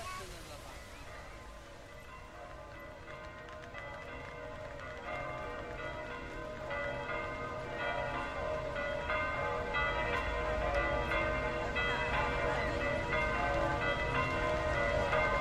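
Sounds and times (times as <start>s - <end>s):
church bells ringing at St. Peter's Square in Rome: 0.1s - 15.3s.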